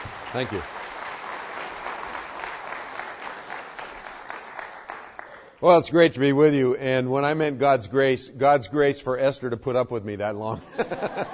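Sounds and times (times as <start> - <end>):
audience applause welcoming a speaker at a morning gathering: 0.0 - 5.6
speech: 0.3 - 0.8, 5.6 - 11.3
laughter: 10.6 - 11.3.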